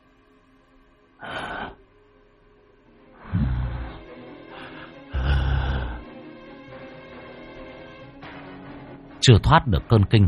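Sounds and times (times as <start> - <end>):
heavy huffing snorting breath: 1.2 - 1.8, 3.2 - 6.1
speech: 9.2 - 10.2.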